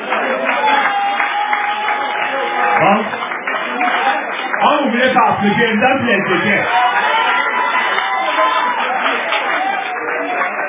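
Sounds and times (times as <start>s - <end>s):
crowd applauding: 0.0s - 10.6s
speech: 5.4s - 6.8s.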